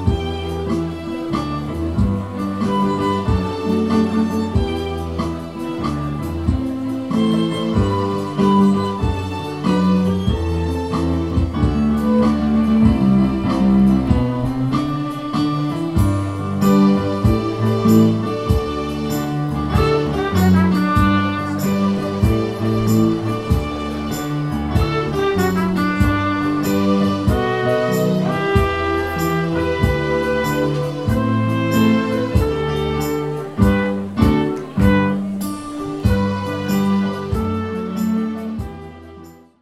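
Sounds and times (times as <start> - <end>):
piano: 0.0 - 39.6
strings: 0.0 - 39.6.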